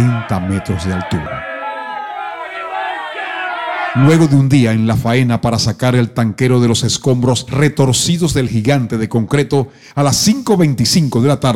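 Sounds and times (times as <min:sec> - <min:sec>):
speech: 0:00.0 - 0:01.4, 0:03.9 - 0:11.5
crowd screaming in horror: 0:00.0 - 0:04.4.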